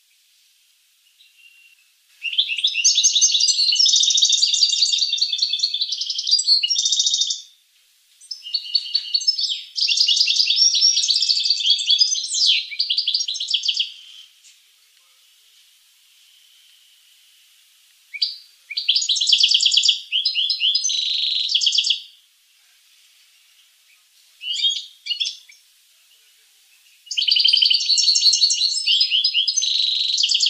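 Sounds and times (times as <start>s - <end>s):
finch singing: 1.2s - 7.4s, 8.2s - 14.3s, 18.2s - 22.0s, 23.9s - 25.6s, 27.0s - 30.4s.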